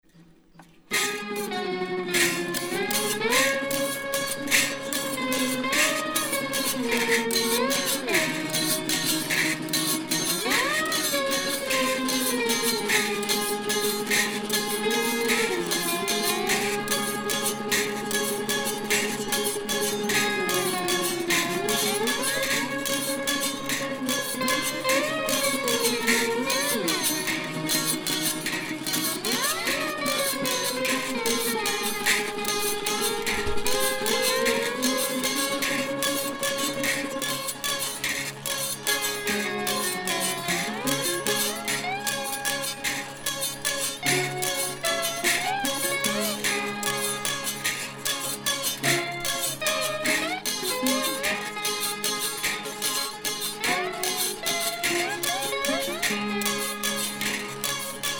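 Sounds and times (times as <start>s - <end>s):
yodeling: 0.9s - 58.1s.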